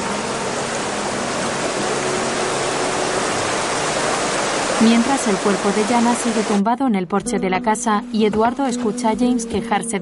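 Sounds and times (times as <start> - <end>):
river current flowing over stones: 0.0 - 6.6
speech: 4.8 - 10.0.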